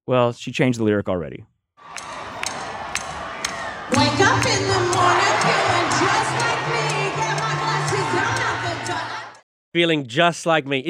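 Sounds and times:
speech: 0:00.1 - 0:02.0, 0:09.7 - 0:10.8
concert crowd singing along at a pop singer's show: 0:01.8 - 0:09.4.

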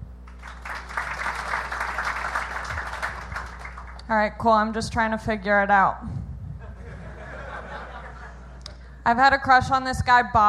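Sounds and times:
audience applause: 0:00.3 - 0:04.0
speech: 0:04.1 - 0:06.2, 0:09.1 - 0:10.4
laughter: 0:06.6 - 0:08.7.

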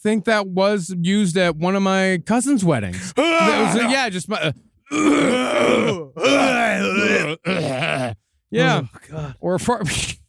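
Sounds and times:
speech: 0:00.0 - 0:10.2
voice imitating a coughing old man: 0:04.9 - 0:08.2.

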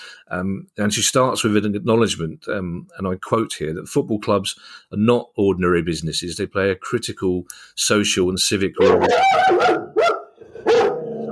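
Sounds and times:
speech: 0:00.3 - 0:10.0
dog Finley barking at someone at the door: 0:08.8 - 0:11.3.

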